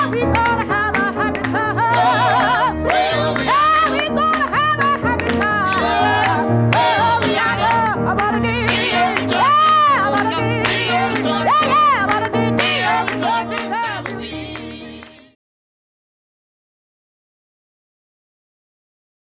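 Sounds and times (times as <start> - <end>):
ragtime music: 0.0 - 15.4.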